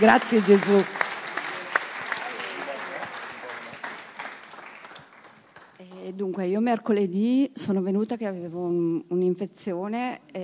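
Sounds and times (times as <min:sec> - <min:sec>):
speech: 0:00.0 - 0:01.0, 0:06.2 - 0:10.4
hands clapping in applause: 0:00.0 - 0:06.1.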